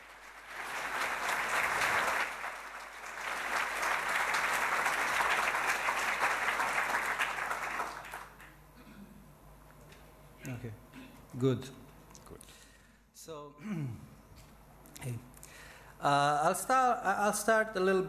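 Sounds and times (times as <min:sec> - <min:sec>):
audience applause: 0:00.0 - 0:08.5
speech: 0:11.4 - 0:11.8, 0:16.0 - 0:18.0.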